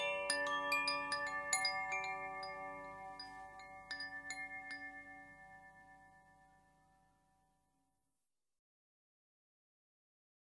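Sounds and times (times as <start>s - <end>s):
crystal wind chime: 0.0s - 7.8s.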